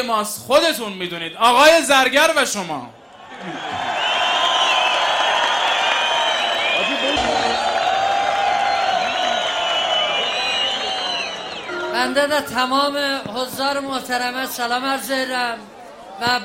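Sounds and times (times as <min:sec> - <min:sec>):
speech: 0:00.0 - 0:03.8, 0:12.0 - 0:16.4
concert audience cheering and applauding a performer: 0:03.3 - 0:12.6.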